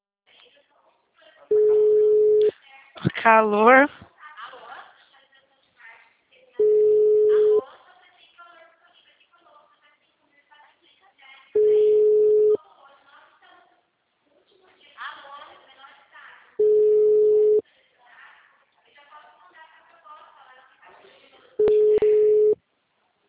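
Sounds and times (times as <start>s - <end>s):
telephone call ringing tones: 1.5s - 2.5s, 6.6s - 7.6s, 11.6s - 12.6s, 16.6s - 17.6s, 21.6s - 22.6s
speech: 3.2s - 4.0s.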